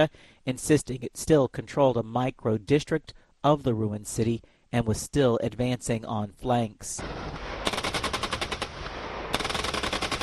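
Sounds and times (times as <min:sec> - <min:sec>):
speech: 0:00.0 - 0:07.4
machine-gun fire from a joint South Korean and U.S. live-fire exercise: 0:07.0 - 0:10.2.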